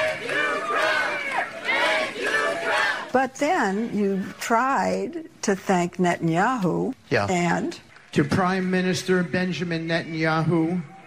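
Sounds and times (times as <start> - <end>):
crowd cheering: 0.0 - 4.7, 7.8 - 11.0
speech: 3.1 - 10.9.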